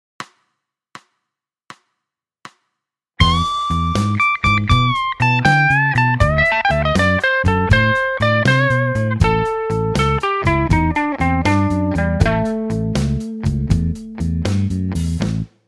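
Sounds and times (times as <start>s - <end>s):
blues music: 3.2s - 15.5s.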